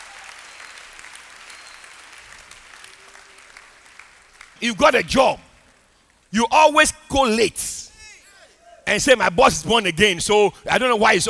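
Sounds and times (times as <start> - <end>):
audience clapping hands: 0.0 - 6.3
speech: 4.6 - 5.4, 6.3 - 7.9, 8.9 - 11.2.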